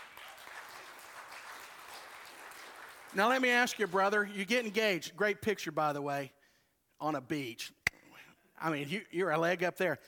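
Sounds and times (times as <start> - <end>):
audience applause for a newly engaged couple: 0.0 - 4.3
speech: 3.1 - 6.4, 7.0 - 7.8, 8.6 - 10.0.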